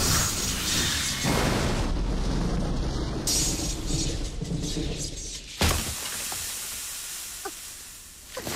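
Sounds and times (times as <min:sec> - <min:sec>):
magic lightning strike crackling: 0:00.0 - 0:08.4
thunder boom: 0:01.2 - 0:05.8.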